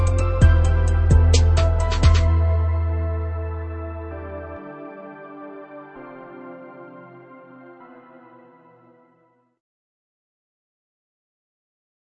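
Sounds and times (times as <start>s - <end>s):
trap beat: 0.0s - 3.8s.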